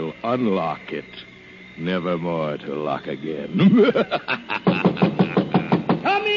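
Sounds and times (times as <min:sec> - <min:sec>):
speech: 0:00.1 - 0:05.2
laughter: 0:03.5 - 0:06.0
knocking on a door: 0:04.6 - 0:06.1.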